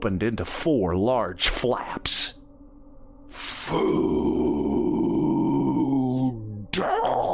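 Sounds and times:
speech: 0.0s - 2.4s, 3.3s - 4.5s
deep monster growl: 3.4s - 7.3s.

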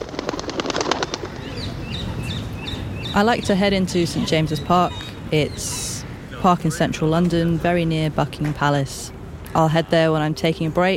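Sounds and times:
parakeets flapping: 0.0s - 2.1s
parakeets in London calling: 1.0s - 7.1s
speech: 3.2s - 5.8s, 6.4s - 10.9s.

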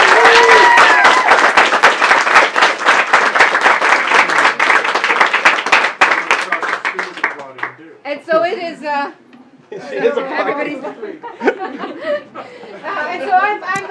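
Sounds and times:
crowd applause: 0.0s - 7.8s
laughter: 9.7s - 13.6s
speech: 9.8s - 11.8s.

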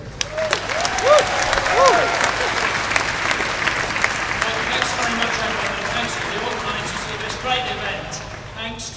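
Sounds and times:
audience applause: 0.0s - 8.7s
vocal whoops: 0.2s - 2.6s.

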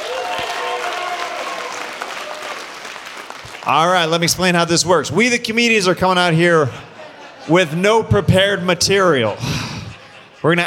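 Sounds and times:
crowd whooping and cheering: 0.0s - 2.9s
crowd clapping: 0.0s - 4.2s
speech: 3.7s - 6.9s, 7.5s - 9.6s, 10.4s - 10.6s
laughter: 6.2s - 10.6s.

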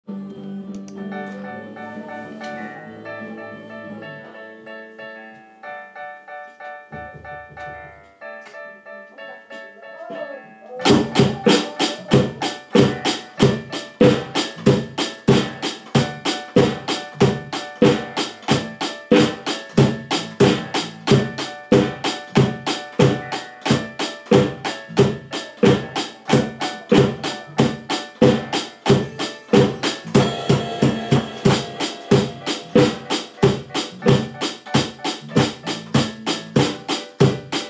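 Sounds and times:
drums: 10.8s - 37.6s.

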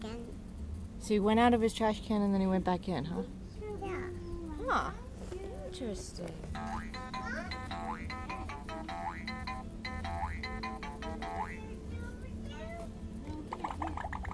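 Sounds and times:
low constant rumble: 0.0s - 14.3s
speech: 1.0s - 3.4s, 4.7s - 5.0s, 5.8s - 7.2s
water bubbling: 13.5s - 14.3s.

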